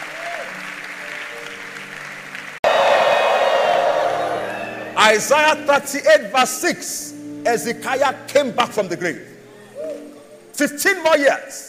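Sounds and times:
crowd cheering and whoops: 0:00.0 - 0:00.6, 0:02.6 - 0:05.0
crowd clapping: 0:00.0 - 0:04.8
speech: 0:05.1 - 0:09.3, 0:10.6 - 0:11.6.

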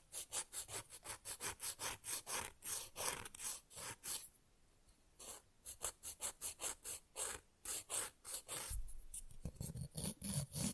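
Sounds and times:
fast rough nail filing: 0:00.1 - 0:04.3, 0:05.2 - 0:08.8, 0:09.4 - 0:10.7.

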